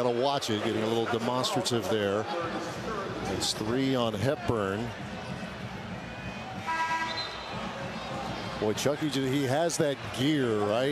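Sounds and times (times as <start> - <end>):
speech: 0.0 - 5.1, 8.6 - 10.8
noise at a basketball game: 0.0 - 10.8
referee's whistle calling a foul at a basketball game: 6.6 - 7.7.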